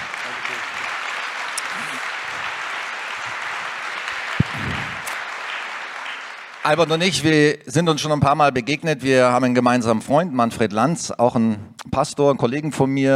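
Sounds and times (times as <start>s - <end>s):
audience applause: 0.0s - 7.4s
speech: 6.6s - 13.1s.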